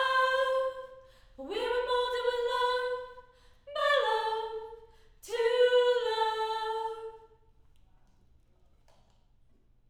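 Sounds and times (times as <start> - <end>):
choir harmony high mid: 0.0 - 7.3.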